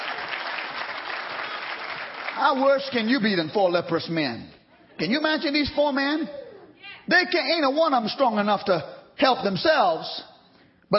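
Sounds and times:
applause: 0.0 - 3.2
speech: 2.4 - 6.4, 7.1 - 10.3.

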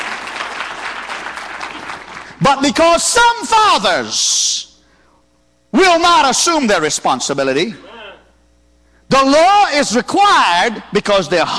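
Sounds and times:
audience clapping: 0.0 - 2.5
speech: 2.4 - 4.7, 5.7 - 7.9, 9.1 - 11.5.

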